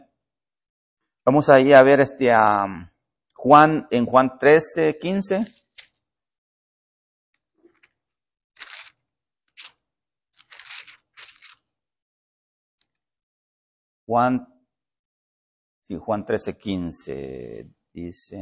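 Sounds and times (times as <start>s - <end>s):
speech: 1.2s - 5.6s, 14.1s - 14.5s, 15.9s - 18.4s
Bible pages being turned: 8.6s - 9.8s, 10.4s - 11.6s.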